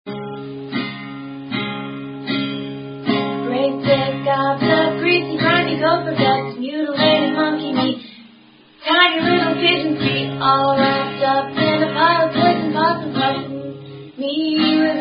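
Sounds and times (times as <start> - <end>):
love song: 3.0 - 15.0.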